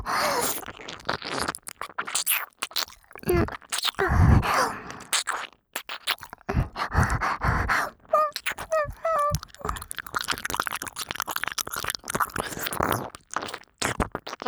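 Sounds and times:
saliva-heavy deep ear licking and sucking: 0:00.0 - 0:14.4
person moaning: 0:07.0 - 0:09.4.

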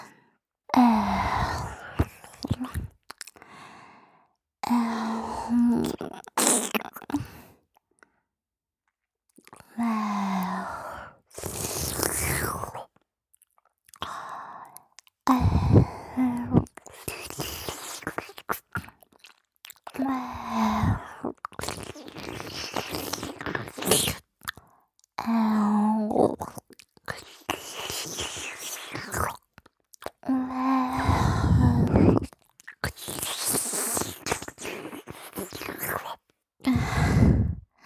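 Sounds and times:
person making mouth sounds: 0:00.8 - 0:03.4, 0:04.6 - 0:07.5, 0:11.4 - 0:12.9, 0:15.0 - 0:24.6, 0:25.2 - 0:37.6.

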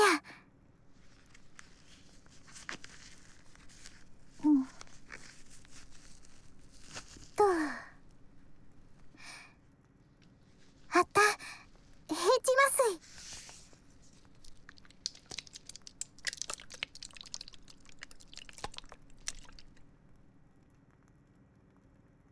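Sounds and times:
loofah water massage: 0:00.1 - 0:20.5
ear cleaning in the right ear: 0:00.9 - 0:09.2, 0:10.5 - 0:19.9.

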